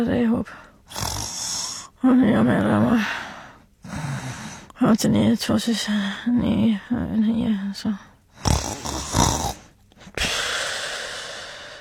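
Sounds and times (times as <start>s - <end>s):
speech: 0.0s - 1.1s, 2.0s - 3.2s, 4.8s - 8.1s
sleepy person snoring: 0.9s - 1.9s, 8.4s - 11.7s.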